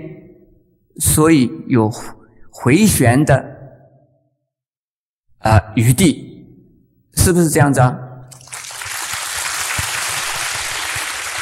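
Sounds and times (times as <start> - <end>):
speech: 1.0 - 3.6, 5.4 - 6.3, 7.2 - 8.0
applause: 8.3 - 11.4.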